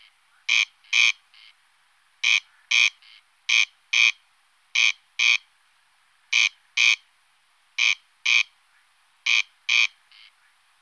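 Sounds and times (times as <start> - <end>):
corn crake rasping calls: 0.0 - 1.6, 2.2 - 5.5, 6.3 - 7.0, 7.8 - 10.8.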